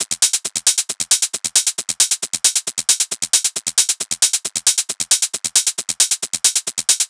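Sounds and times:
techno hi-hat loop at 135 BPM: 0:00.0 - 0:07.0.

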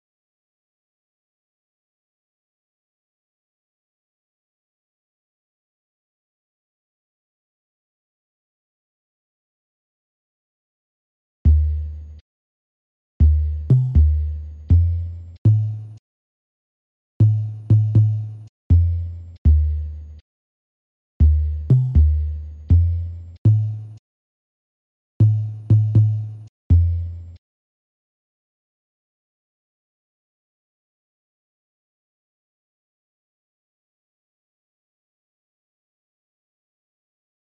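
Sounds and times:
vintage RnB percussion loop at 120 BPM in G minor: 0:13.5 - 0:16.0, 0:17.2 - 0:20.2, 0:21.4 - 0:24.0, 0:25.2 - 0:27.0.

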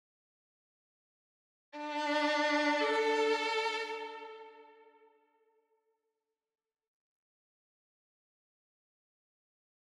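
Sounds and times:
violin melody in D minor: 0:01.8 - 0:05.0.

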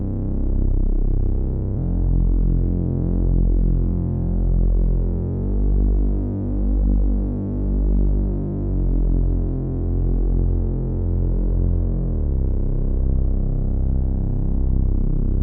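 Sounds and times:
ambient bass melody loop in C minor: 0:00.0 - 0:15.4.

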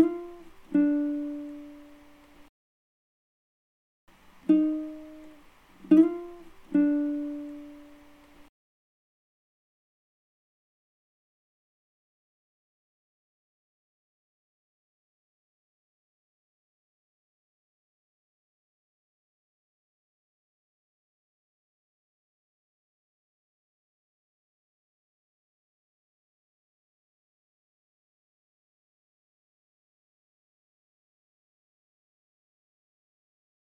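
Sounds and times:
guitar loop in G minor: 0:00.0 - 0:02.4, 0:04.5 - 0:08.4.

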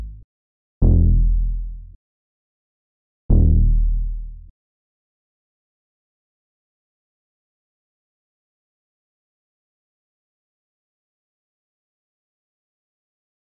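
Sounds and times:
121 BPM C# minor bass loop: 0:00.0 - 0:00.2, 0:00.8 - 0:01.9, 0:03.3 - 0:04.2.

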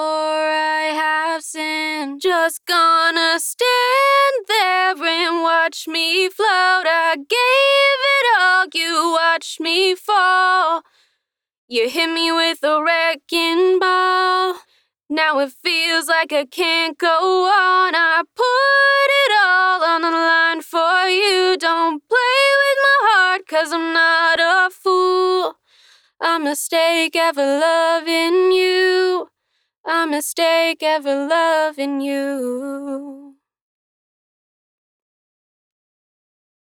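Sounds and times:
dry a cappella main vocal in E major at 130 bpm: 0:00.0 - 0:10.9, 0:11.7 - 0:29.3, 0:29.9 - 0:33.4.

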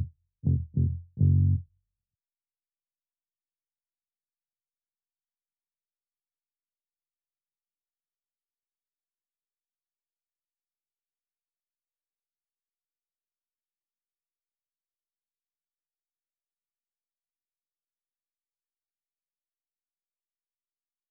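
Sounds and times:
99 BPM A sharp minor bass loop: 0:00.0 - 0:01.6.

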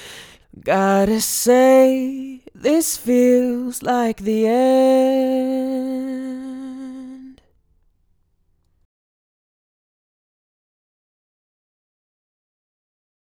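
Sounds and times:
man singing a cappella in C major: 0:00.0 - 0:07.4.

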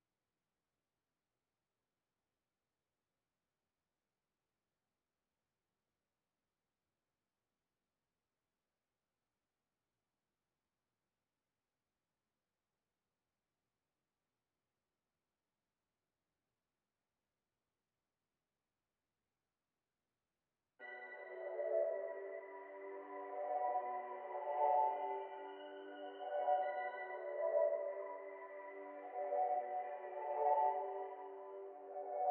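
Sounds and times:
166 BPM B minor music: 0:20.8 - 0:32.2.

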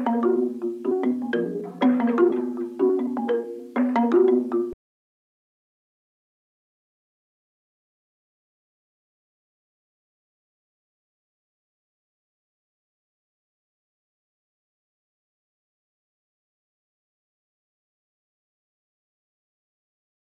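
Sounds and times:
mallet percussion loop at 123 BPM in A sharp minor: 0:00.0 - 0:04.8.

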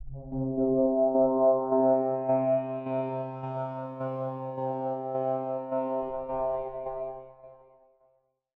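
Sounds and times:
synth pad: 0:00.0 - 0:07.6.

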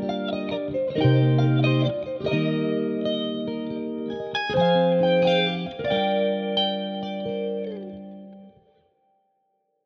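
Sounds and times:
guitar loops in C minor: 0:00.0 - 0:08.7.

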